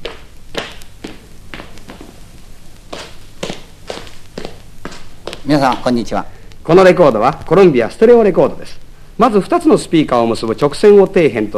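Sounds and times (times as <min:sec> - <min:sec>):
footsteps of a person walking on a stereo demonstration record: 0:00.0 - 0:06.3
low hiss: 0:00.0 - 0:11.5
speech: 0:05.5 - 0:11.5.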